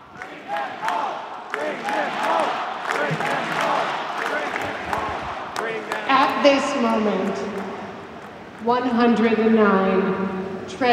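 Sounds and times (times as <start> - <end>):
crowd at a rally chanting: 0.0 - 8.5
speech: 0.5 - 1.0, 6.4 - 7.7, 8.6 - 10.9.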